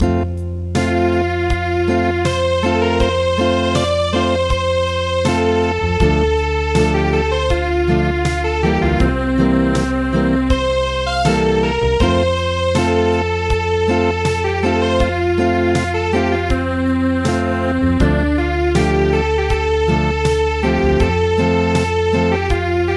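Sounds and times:
acoustic music: 0.0s - 22.9s.

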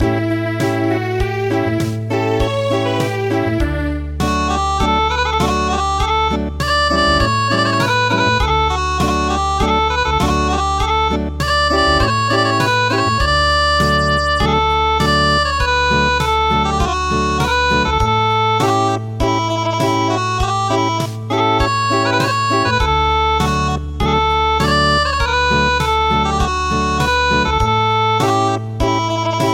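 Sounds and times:
traditional acoustic music: 0.0s - 29.5s.

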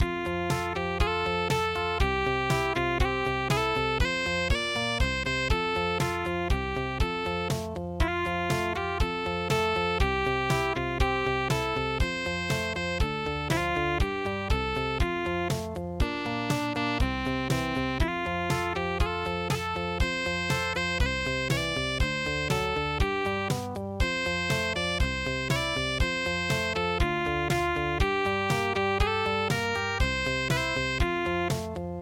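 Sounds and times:
soft rock music: 0.0s - 32.0s.

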